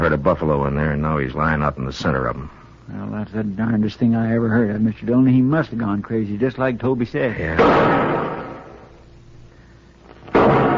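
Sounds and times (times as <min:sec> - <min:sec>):
speech: 0:00.1 - 0:08.2
rifle shots fired as a signal for help: 0:07.6 - 0:08.9, 0:10.3 - 0:10.7.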